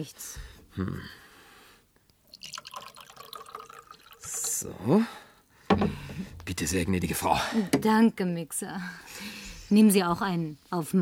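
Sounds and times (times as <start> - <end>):
speech: 0.0 - 1.2, 4.6 - 5.2, 5.8 - 10.9
fizzy bubbly trickling of soda: 2.3 - 4.7
scotch and soda poured into a glass: 2.3 - 4.7
knock: 5.7 - 6.5.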